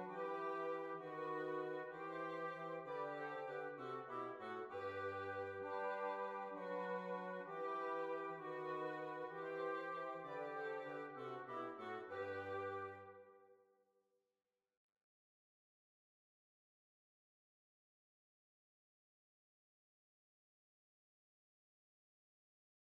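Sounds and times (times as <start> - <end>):
waltz music: 0.0 - 13.2.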